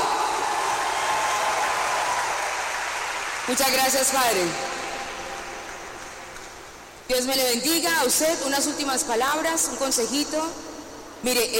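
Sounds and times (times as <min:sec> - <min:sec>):
audience applause: 0:00.0 - 0:03.6
speech: 0:03.5 - 0:04.8, 0:07.1 - 0:11.5.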